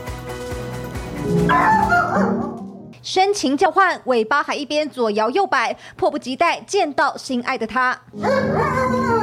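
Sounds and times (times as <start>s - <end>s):
speech: 1.2s - 9.0s
two dogs excitedly whining and yipping: 1.4s - 2.8s, 8.2s - 9.2s.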